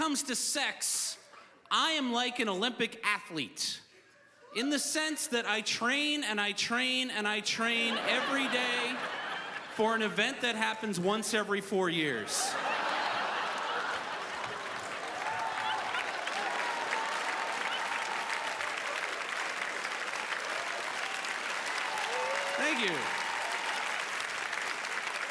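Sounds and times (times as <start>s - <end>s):
speech: 0.0s - 3.8s, 4.5s - 9.2s, 9.8s - 12.7s, 22.8s - 23.2s
laughter: 7.5s - 10.8s, 12.2s - 18.2s
audience applause: 12.5s - 25.2s.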